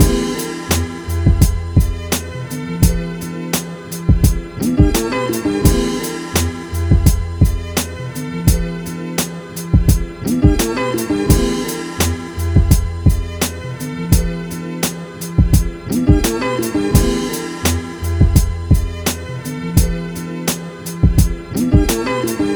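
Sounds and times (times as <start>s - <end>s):
beats: 0.0s - 22.5s.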